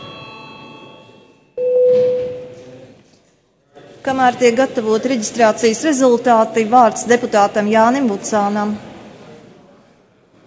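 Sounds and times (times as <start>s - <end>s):
parliament registration bell electronic tone: 0.0s - 2.6s
speech: 4.0s - 8.9s.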